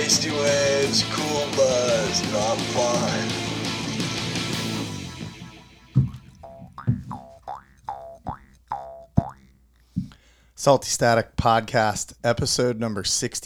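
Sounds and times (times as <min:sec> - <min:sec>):
speech: 0:00.1 - 0:03.6, 0:10.6 - 0:13.4
jaw harp twanging: 0:04.6 - 0:09.6.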